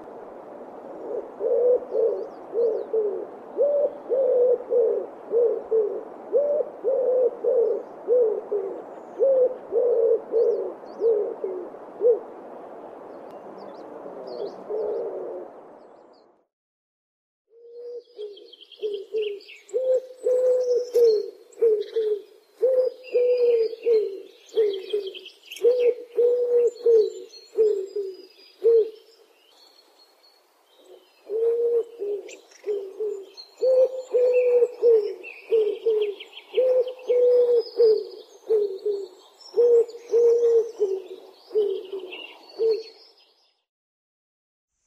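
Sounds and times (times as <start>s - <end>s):
wood pigeon calling: 1.0s - 12.3s, 17.6s - 29.2s, 30.8s - 43.0s.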